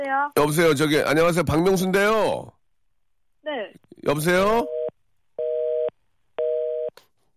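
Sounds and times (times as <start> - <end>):
speech: 0.2 - 2.6, 3.4 - 4.7
telephone disconnect busy tone: 4.7 - 6.9.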